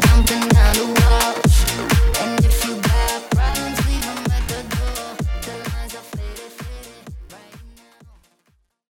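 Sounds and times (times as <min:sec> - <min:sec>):
club dance beat at 128 BPM: 0:00.0 - 0:08.4.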